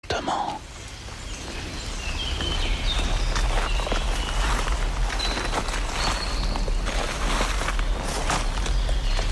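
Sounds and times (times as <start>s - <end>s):
footsteps on dead leaves: 1.7s - 9.3s
twigs cracking underfoot: 2.3s - 9.3s.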